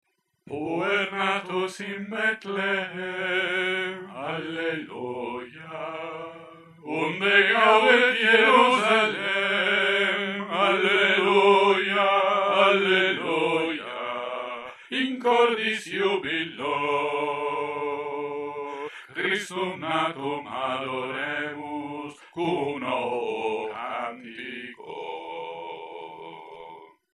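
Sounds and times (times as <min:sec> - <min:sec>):
bass voices singing a Christmas song: 0:00.5 - 0:26.9.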